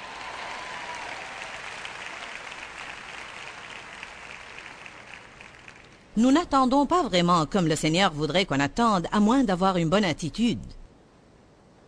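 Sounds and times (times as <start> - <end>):
crowd applauding: 0.0 - 6.1
speech: 6.2 - 10.8.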